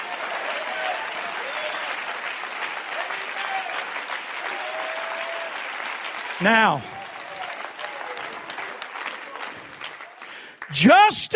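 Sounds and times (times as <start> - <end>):
audience clapping hands: 0.0 - 11.3
speech: 6.4 - 6.9, 10.7 - 11.3.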